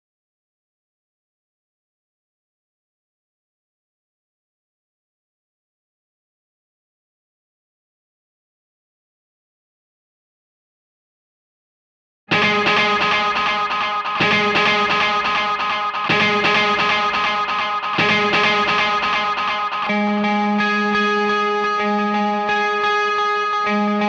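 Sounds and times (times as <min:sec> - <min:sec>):
guitar in C: 0:12.3 - 0:24.0.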